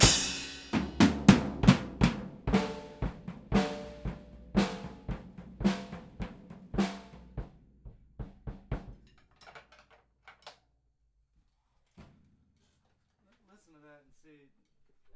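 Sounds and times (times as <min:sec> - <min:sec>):
drums: 0:00.0 - 0:09.3.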